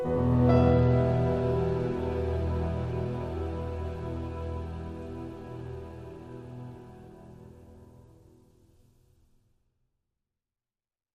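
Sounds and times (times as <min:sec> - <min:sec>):
piano: 0:00.0 - 0:08.6.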